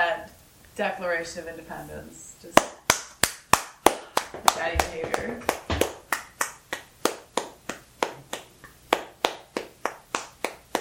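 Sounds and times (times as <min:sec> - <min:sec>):
speech: 0:00.8 - 0:02.8, 0:04.3 - 0:05.6
rhythmic hand claps: 0:02.6 - 0:10.7.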